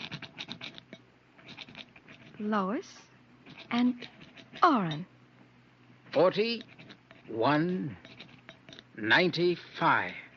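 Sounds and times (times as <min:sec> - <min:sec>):
rock scratching on a lead door: 0:00.0 - 0:02.4, 0:03.4 - 0:05.0, 0:06.1 - 0:09.4
speech: 0:02.4 - 0:03.1, 0:03.7 - 0:05.1, 0:06.1 - 0:06.7, 0:07.3 - 0:08.1, 0:09.0 - 0:10.2.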